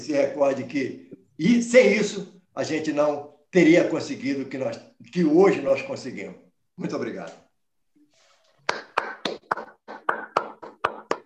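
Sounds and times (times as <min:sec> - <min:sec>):
speech: 0:00.0 - 0:07.4
audience applause: 0:08.5 - 0:11.2.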